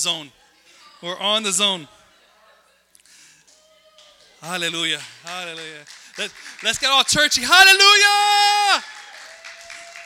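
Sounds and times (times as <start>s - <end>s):
speech: 0.0s - 0.4s, 1.0s - 2.0s, 4.4s - 9.0s
clapping in audience: 3.4s - 10.0s.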